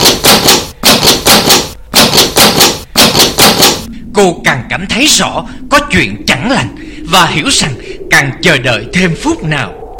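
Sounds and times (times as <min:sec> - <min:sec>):
hard banging on a door: 0:00.0 - 0:03.9
speech: 0:04.2 - 0:09.8.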